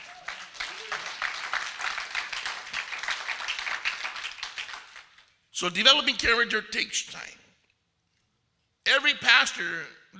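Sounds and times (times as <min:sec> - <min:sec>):
audience clapping: 0:00.0 - 0:05.4
speech: 0:05.6 - 0:07.4, 0:09.0 - 0:10.1.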